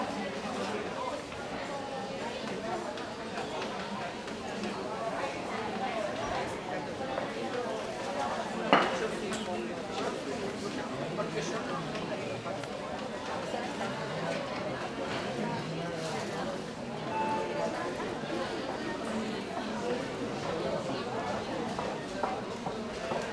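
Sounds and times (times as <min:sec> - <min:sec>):
murmur of people in a sanatorium entrance hall: 0:00.0 - 0:23.3
call bells ringing in a sanatorium entrance hall: 0:17.1 - 0:18.2.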